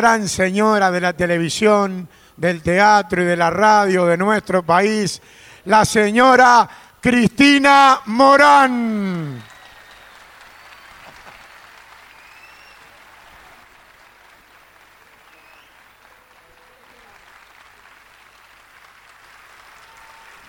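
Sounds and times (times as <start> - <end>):
speech: 0.0 - 9.5
audience applause: 9.1 - 20.4.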